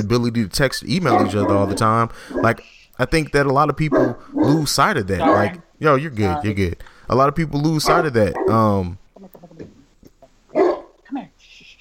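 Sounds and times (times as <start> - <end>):
speech: 0.0 - 9.7
dog barking: 1.1 - 2.6, 3.9 - 4.6, 5.2 - 5.6, 7.8 - 8.6, 10.5 - 11.0.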